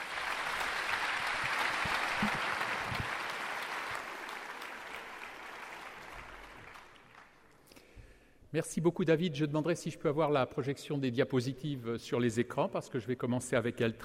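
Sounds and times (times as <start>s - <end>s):
audience applause: 0.0s - 7.5s
speech: 8.5s - 14.0s.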